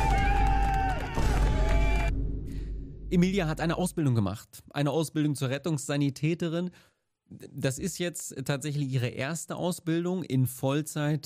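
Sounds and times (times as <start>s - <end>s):
crowd applause and cheering: 0.0s - 2.2s
speech: 3.1s - 11.2s.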